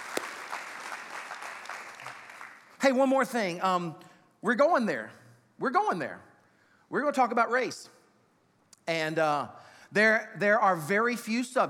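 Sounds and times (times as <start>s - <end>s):
audience clapping: 0.0s - 3.0s
speech: 2.8s - 6.3s, 6.9s - 8.0s, 8.9s - 11.6s.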